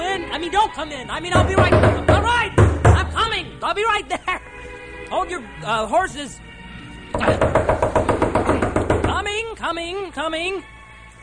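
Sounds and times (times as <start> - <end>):
speech: 0.4 - 2.6, 3.3 - 4.5, 5.1 - 6.5, 7.2 - 7.7, 9.6 - 10.8
knocking on a door: 1.4 - 3.1, 7.2 - 9.3.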